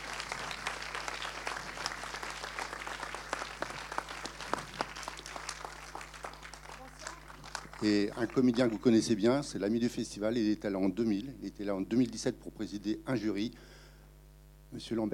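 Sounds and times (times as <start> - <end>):
cinema audience applauding at a film premiere presentation: 0.0 - 9.1
low electrical hum: 0.0 - 15.1
speech: 7.8 - 13.8, 14.7 - 15.1.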